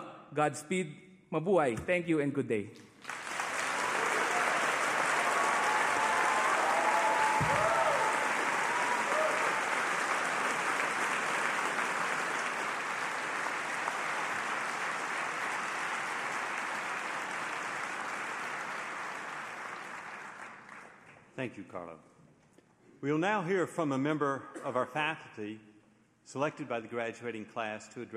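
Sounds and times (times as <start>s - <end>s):
speech: 0.3s - 2.9s, 21.4s - 22.1s, 23.0s - 25.7s, 26.3s - 28.1s
crowd applause: 3.0s - 21.1s
faint cheers: 3.8s - 10.2s.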